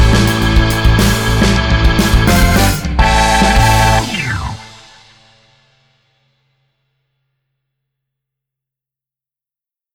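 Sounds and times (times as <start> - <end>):
rock music: 0.0 - 5.7.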